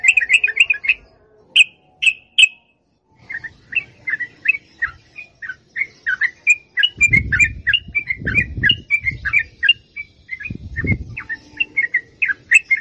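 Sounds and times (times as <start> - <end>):
yellow-vented bulbul singing long rolling song: 0.0 - 12.7.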